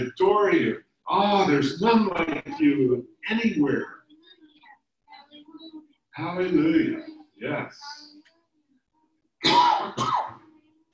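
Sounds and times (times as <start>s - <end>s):
speech: 0.0s - 4.0s, 6.2s - 8.1s, 9.4s - 10.3s
person clearing throat during a spoken prayer: 9.4s - 10.4s.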